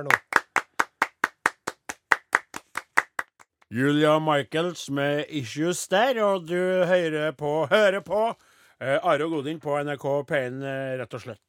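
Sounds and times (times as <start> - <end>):
speech: 0.0 - 0.3, 3.7 - 11.4
hosts applauding in studio: 0.0 - 3.5.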